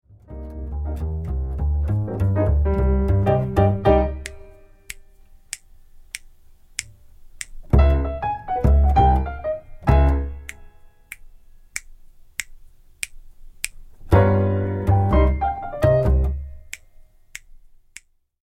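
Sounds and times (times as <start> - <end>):
drumless backing track: 0.3 - 5.0, 7.5 - 11.3, 13.7 - 16.8.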